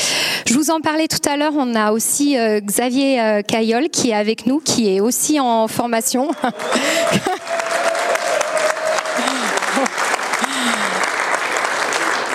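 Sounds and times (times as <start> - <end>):
speech: 0.5 - 7.4
audience applause: 6.2 - 12.3
laughter: 6.3 - 7.8, 8.5 - 12.0.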